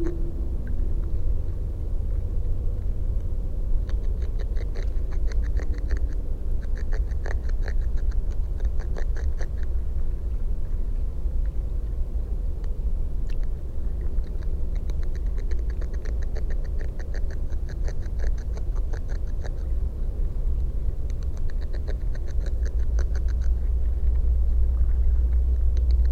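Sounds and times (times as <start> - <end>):
steady deep rumble: 0.0 - 26.1
beavers chewing in Dyke Marsh: 3.8 - 9.8, 13.3 - 26.1.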